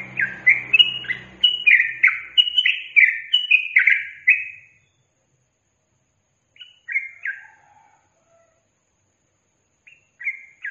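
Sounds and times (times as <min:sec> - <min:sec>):
Yellow-vented bulbul song: 0:00.0 - 0:05.2, 0:06.4 - 0:07.6, 0:09.5 - 0:10.6.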